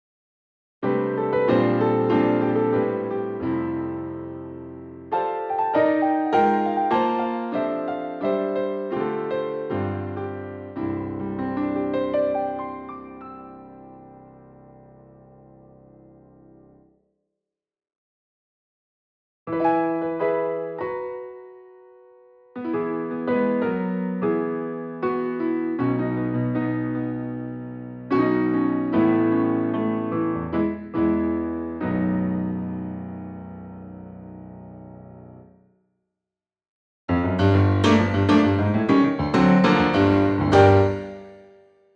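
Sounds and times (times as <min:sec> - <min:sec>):
piano: 0:00.8 - 0:17.0, 0:19.5 - 0:35.7, 0:37.1 - 0:41.9.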